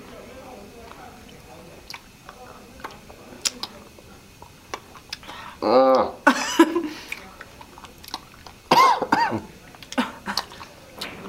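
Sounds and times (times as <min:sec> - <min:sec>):
low hum: 0:00.0 - 0:11.2
chewing a stale candy roll: 0:00.8 - 0:05.3, 0:07.1 - 0:08.7, 0:09.6 - 0:11.2
speech: 0:05.6 - 0:05.8.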